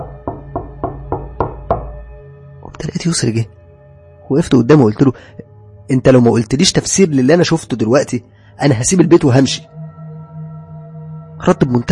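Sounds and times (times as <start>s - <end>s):
knocking on an apartment door: 0.0s - 2.1s
speech: 2.9s - 3.6s, 4.3s - 9.7s, 11.4s - 11.9s.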